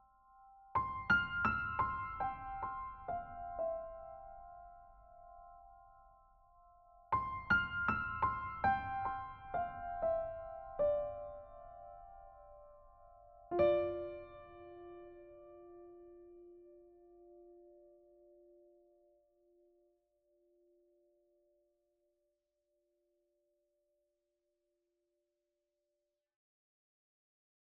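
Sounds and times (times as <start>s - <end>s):
piano music: 0.7s - 5.8s, 7.1s - 17.9s.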